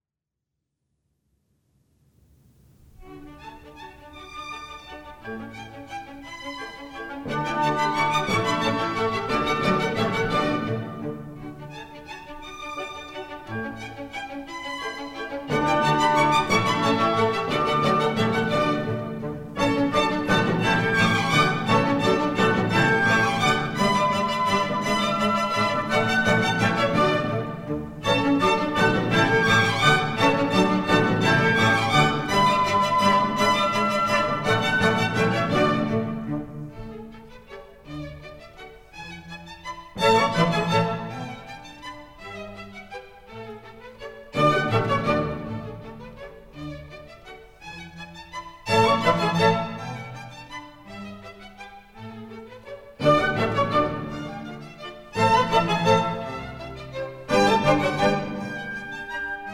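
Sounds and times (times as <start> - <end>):
German dances in D major: 2.8 - 59.5.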